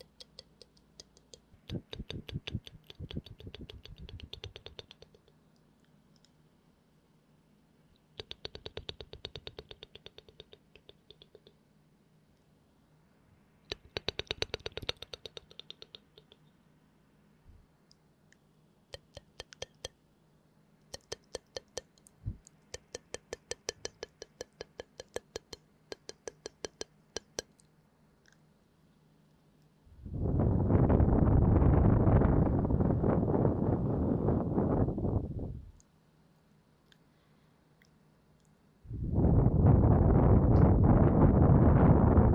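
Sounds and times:
wet mouth clicks and smacks: 0:00.0 - 0:05.4, 0:08.0 - 0:11.6, 0:13.7 - 0:16.5, 0:17.9 - 0:20.0, 0:20.8 - 0:28.5, 0:35.7 - 0:37.1, 0:37.8 - 0:38.6
faint low hum: 0:00.0 - 0:42.3.

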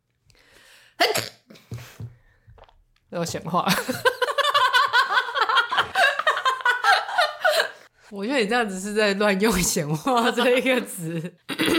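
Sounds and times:
sneeze: 0:01.0 - 0:01.5
speech: 0:03.1 - 0:04.1, 0:08.1 - 0:11.7
laughter: 0:03.7 - 0:07.8, 0:10.0 - 0:11.7.

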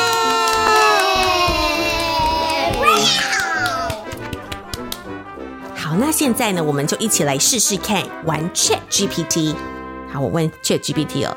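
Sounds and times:
cheering: 0:00.0 - 0:04.1
applause: 0:00.0 - 0:05.1
speech: 0:06.2 - 0:11.3.

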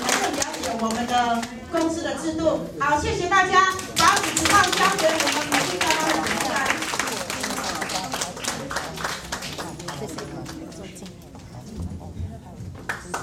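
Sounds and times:
audience applause: 0:00.0 - 0:01.6, 0:03.8 - 0:10.9
speech: 0:00.8 - 0:06.9.

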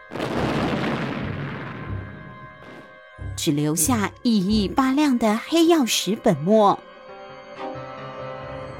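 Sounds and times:
explosion sound effect: 0:00.0 - 0:02.9
speech: 0:03.4 - 0:06.9.

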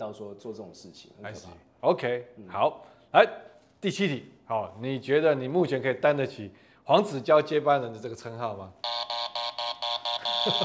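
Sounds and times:
speech: 0:00.0 - 0:09.1, 0:10.4 - 0:10.6
doorbell buzzer being pressed: 0:08.8 - 0:10.6.

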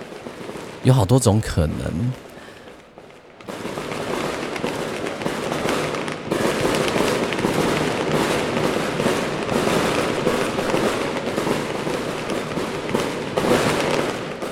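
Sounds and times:
speech: 0:00.8 - 0:02.2
medium-sized fireworks exploding: 0:03.5 - 0:14.4.

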